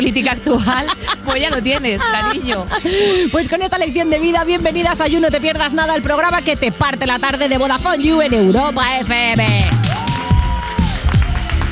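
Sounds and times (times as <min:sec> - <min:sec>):
speech: 0:00.0 - 0:09.8
laughter: 0:00.5 - 0:03.4
audience applause: 0:09.6 - 0:11.7.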